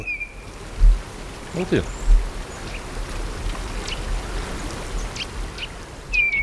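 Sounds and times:
mistle thrush call: 0:00.0 - 0:00.4, 0:06.1 - 0:06.4
steady hissing wash of rain-like noise: 0:00.0 - 0:06.4.

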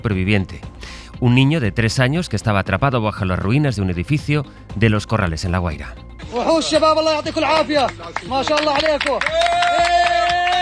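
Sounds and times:
speech: 0:00.0 - 0:10.0
applause: 0:06.7 - 0:10.5
cheering: 0:08.5 - 0:10.5.

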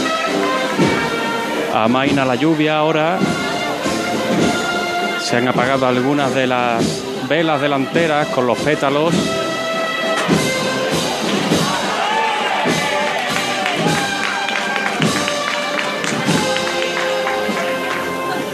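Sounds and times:
crowd applauding in the street: 0:00.0 - 0:18.5
speech: 0:01.8 - 0:03.4, 0:04.3 - 0:04.6, 0:05.2 - 0:09.4.

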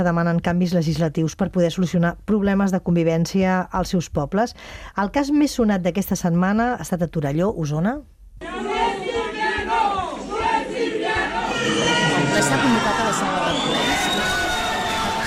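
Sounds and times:
speech: 0:00.0 - 0:08.7
crowd shouting and jeering: 0:08.4 - 0:15.2.

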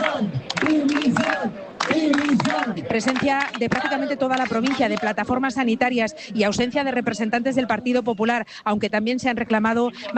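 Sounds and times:
protest crowd shouting against president Mañueco: 0:00.0 - 0:04.9
speech: 0:00.2 - 0:01.3, 0:02.8 - 0:10.1.

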